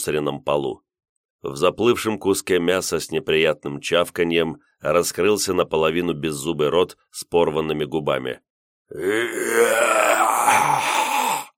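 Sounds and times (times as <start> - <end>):
speech: 0.0 - 11.0
long low guttural human moan: 8.9 - 11.5.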